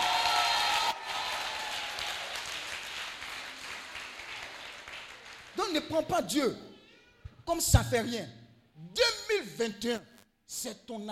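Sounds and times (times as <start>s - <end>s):
church congregation applauding: 0.0s - 6.1s
speech: 5.7s - 6.7s, 7.5s - 11.1s.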